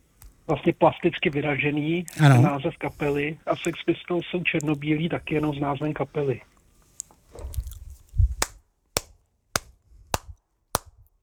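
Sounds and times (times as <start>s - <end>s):
speech: 0.5s - 6.5s
handclaps: 8.4s - 11.0s.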